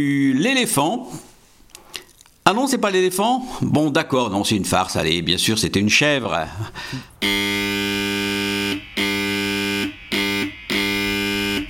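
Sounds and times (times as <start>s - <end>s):
speech: 0.0s - 1.3s, 2.4s - 8.4s
electronic siren signalling end of school recess: 7.2s - 11.6s.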